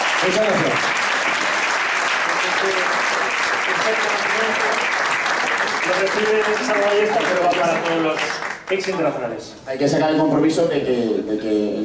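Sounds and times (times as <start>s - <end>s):
audience applause: 0.0s - 9.2s
speech: 0.2s - 1.0s, 2.4s - 11.8s.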